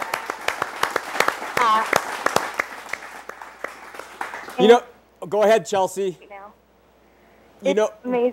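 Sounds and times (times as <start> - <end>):
audience applause: 0.0 - 4.6
speech: 4.6 - 6.3, 7.6 - 8.3.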